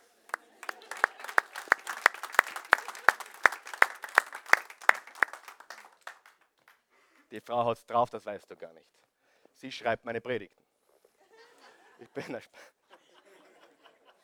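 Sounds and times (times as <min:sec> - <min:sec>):
audience applause: 0:00.0 - 0:06.4
laughter: 0:00.3 - 0:06.2, 0:11.2 - 0:14.2
speech: 0:07.4 - 0:09.0, 0:09.6 - 0:10.6, 0:12.0 - 0:12.8.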